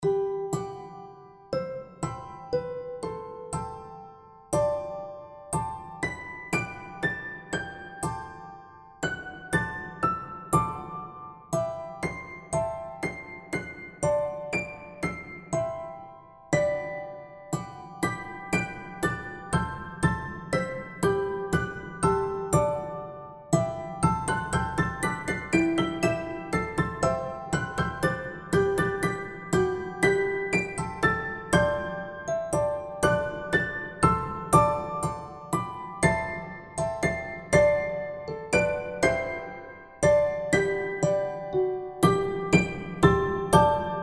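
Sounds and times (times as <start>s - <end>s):
piano: 0.0s - 44.0s.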